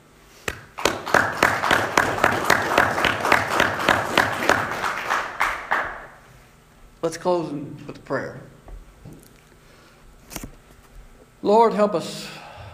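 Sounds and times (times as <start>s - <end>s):
audience round of applause: 0.8s - 6.2s
speech: 7.1s - 8.5s, 11.4s - 12.4s.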